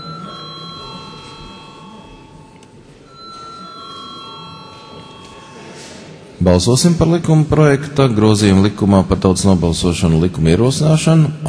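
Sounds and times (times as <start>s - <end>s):
electric session bell ringing in a parliament chamber before a vote: 0.0s - 6.2s
faint noise: 0.0s - 11.4s
speech: 6.4s - 11.4s.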